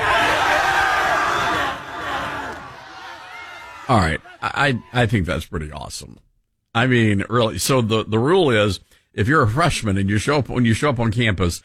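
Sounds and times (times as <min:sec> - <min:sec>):
crowd of screaming high school seniors: 0:00.0 - 0:05.1
speech: 0:03.9 - 0:11.6.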